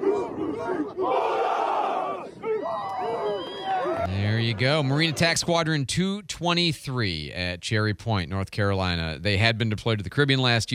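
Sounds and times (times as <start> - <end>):
crowd chanting: 0.0 - 5.4
speech: 4.5 - 10.7.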